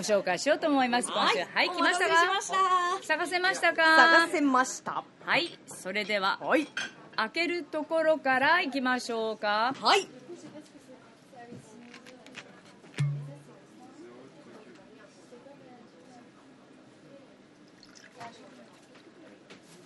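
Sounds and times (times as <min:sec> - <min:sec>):
speech: 0:00.0 - 0:10.5
drink pouring: 0:17.7 - 0:18.9.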